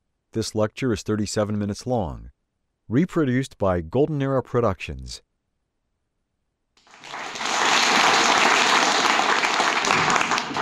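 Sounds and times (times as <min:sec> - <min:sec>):
speech: 0:00.4 - 0:05.3
audience applause: 0:06.8 - 0:10.6.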